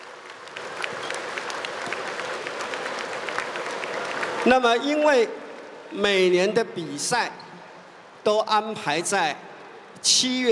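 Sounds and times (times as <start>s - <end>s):
warm applause from audience: 0.0s - 6.0s
speech: 4.4s - 7.4s, 8.2s - 10.5s.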